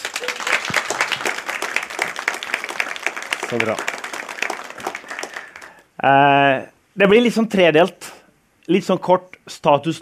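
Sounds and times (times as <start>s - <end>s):
audience applause: 0.0s - 5.8s
speech: 3.5s - 4.0s, 6.0s - 8.0s, 8.7s - 10.0s.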